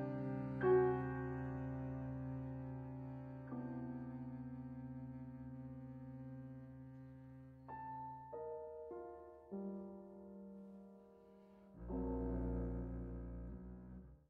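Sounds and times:
double bass: 0.0s - 7.6s, 11.8s - 14.2s
piano: 0.0s - 14.2s.

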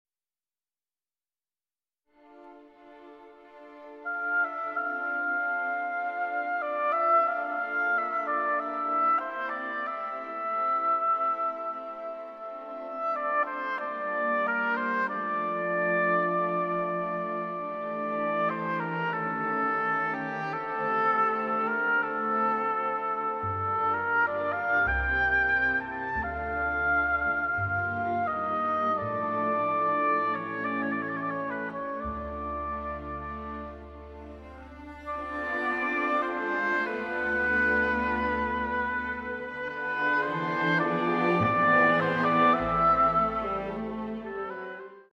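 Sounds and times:
vocalise arranged for oboe: 4.0s - 45.1s.

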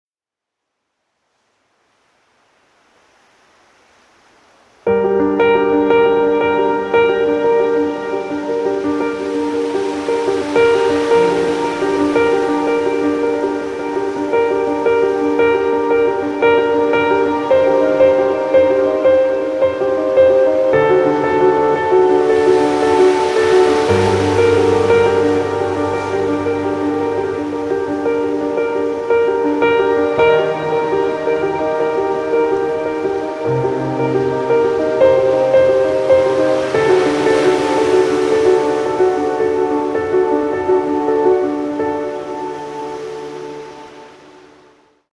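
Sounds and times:
piano: 4.8s - 45.1s.

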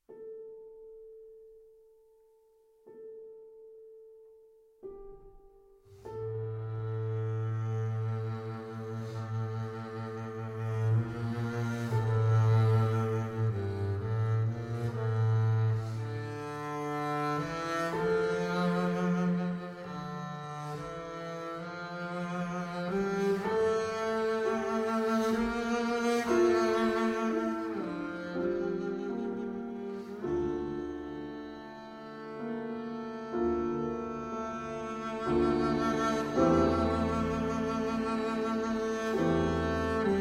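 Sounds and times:
piano: 0.0s - 40.1s
double bass: 6.2s - 30.0s, 30.8s - 40.1s.

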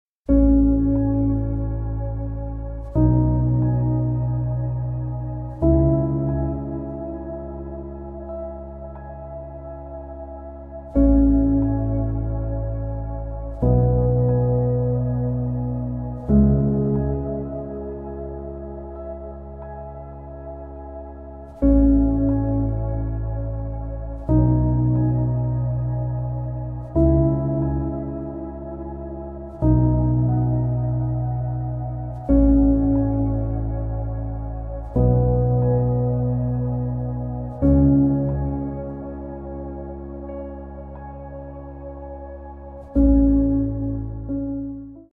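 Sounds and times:
piano music: 0.3s - 45.1s.

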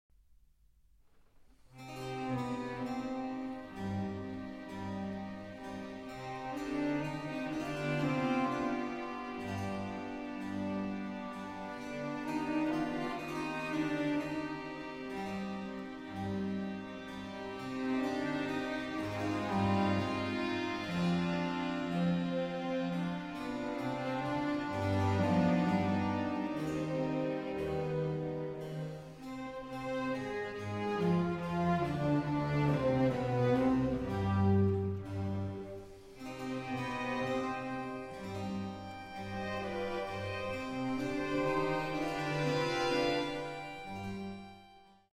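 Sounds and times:
violin concerto adagio: 1.9s - 44.7s.

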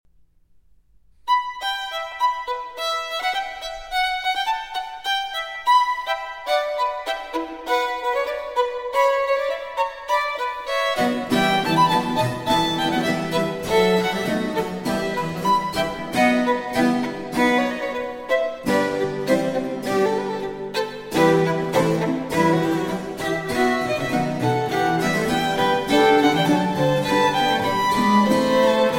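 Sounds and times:
violin and continuo sonata allegro: 1.2s - 28.9s.

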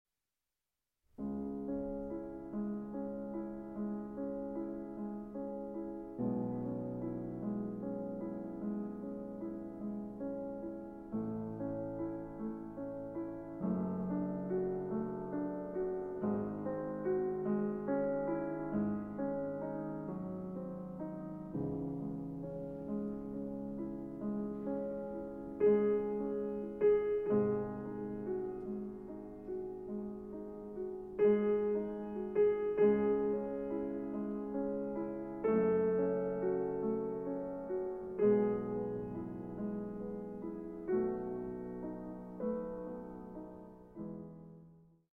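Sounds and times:
piano sonata in C-sharp minor: 1.1s - 45.1s.

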